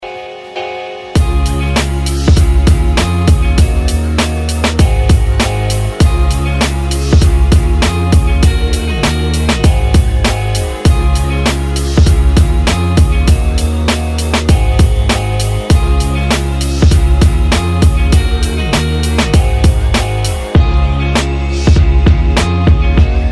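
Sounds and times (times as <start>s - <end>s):
popular vlog music: 0.0s - 23.3s.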